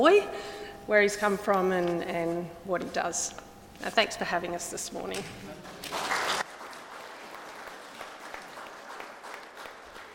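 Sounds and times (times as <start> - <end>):
speech: 0.0 - 6.0
audience clapping: 5.6 - 10.1.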